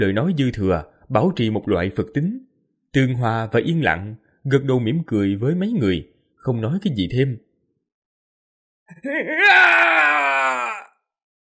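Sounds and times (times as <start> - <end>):
speech: 0.0 - 7.5, 8.9 - 10.2
distant anguished scream: 8.9 - 11.0.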